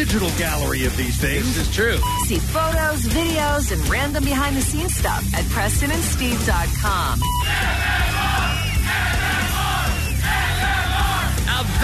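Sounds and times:
speech: 0.0s - 8.1s
large live crowd cheering and yelling: 7.4s - 11.8s.

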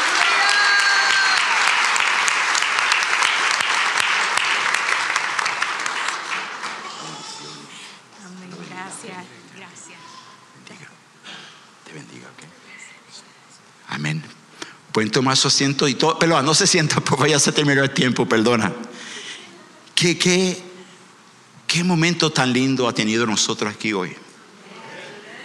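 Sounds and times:
loud sustained audience applause: 0.0s - 7.8s
speech: 15.0s - 18.9s, 20.0s - 20.6s, 21.8s - 24.2s.

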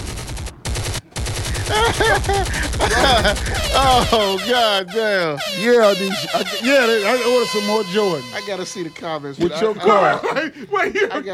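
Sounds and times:
automatic gunfire sound effect: 0.0s - 4.4s
laughter: 1.4s - 11.3s
speech: 1.7s - 11.3s
high wavering tones: 3.5s - 9.2s.

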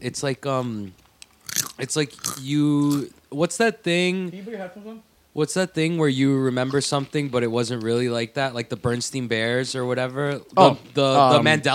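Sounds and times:
speech: 0.0s - 1.0s, 1.8s - 11.7s
crunching and chewing of chips against a microphone: 1.4s - 3.1s.

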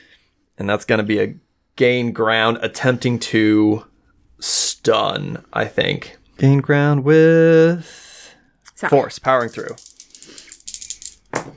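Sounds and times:
speech: 0.6s - 8.1s, 8.8s - 10.4s
dice rattling and clattering: 9.1s - 11.5s.

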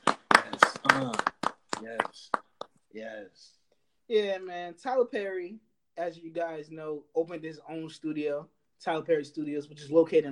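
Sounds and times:
hand claps: 0.0s - 2.8s
speech: 1.8s - 10.3s.

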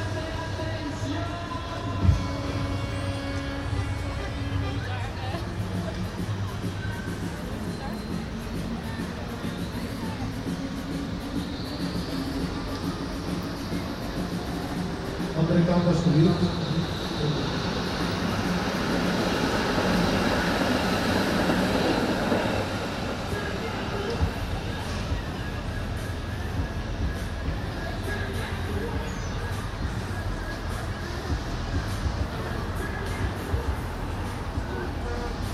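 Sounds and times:
crowd chatter at Koningsdag celebration in Den Haag: 0.0s - 35.5s.

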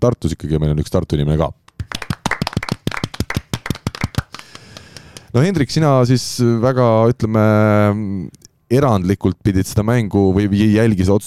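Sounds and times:
speech: 0.0s - 1.6s, 5.3s - 11.2s
small group clapping: 1.7s - 5.3s.

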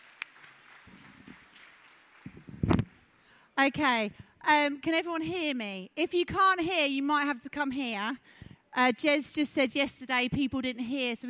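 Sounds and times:
audience clapping: 0.0s - 3.3s
speech: 3.6s - 11.2s.

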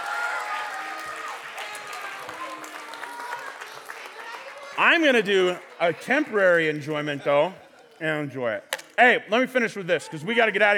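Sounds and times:
audience applause: 0.0s - 6.8s
speech: 4.8s - 10.7s.

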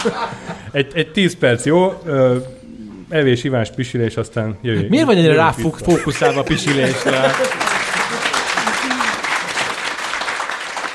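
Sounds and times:
laughter: 0.0s - 0.7s, 4.8s - 9.9s
speech: 0.0s - 7.6s
audience applauding: 5.9s - 10.9s.

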